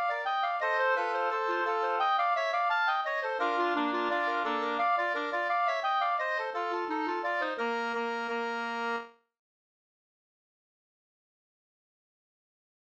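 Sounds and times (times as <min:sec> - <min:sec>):
ganglat walking tune in old style: 0:00.0 - 0:09.1.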